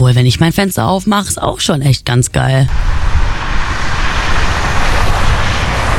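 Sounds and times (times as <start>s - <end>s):
speech: 0.0s - 3.1s
street traffic noise: 2.7s - 5.9s.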